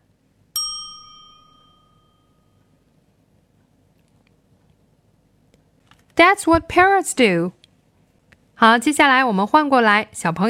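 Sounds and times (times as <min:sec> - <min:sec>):
faint low hum: 0:00.0 - 0:10.4
bright ding chime: 0:00.6 - 0:02.6
speech: 0:06.2 - 0:07.6, 0:08.6 - 0:10.4.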